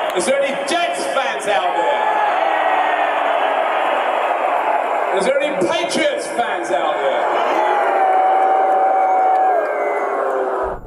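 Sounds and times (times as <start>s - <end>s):
big stadium crowd cheering: 0.0s - 10.8s
speech: 0.2s - 1.8s
high whistle-like whoop: 7.5s - 10.8s.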